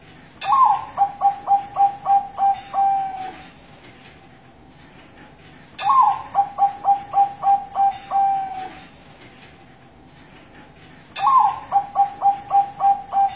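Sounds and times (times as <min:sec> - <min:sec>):
zebra dove cooing master song: 0:00.4 - 0:03.5, 0:05.8 - 0:08.9, 0:11.2 - 0:13.3.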